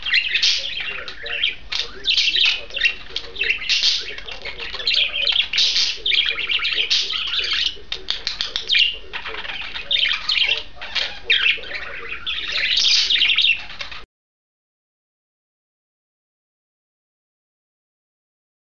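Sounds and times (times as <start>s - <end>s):
pair of budgerigars warbling chatter: 0.0s - 14.0s.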